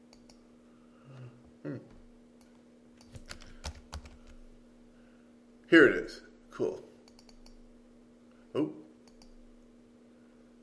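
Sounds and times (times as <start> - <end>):
keys clacking as a search word is typed on a computer keyboard: 2.4 - 4.4, 7.0 - 7.6, 9.0 - 9.4
speech: 5.7 - 6.3.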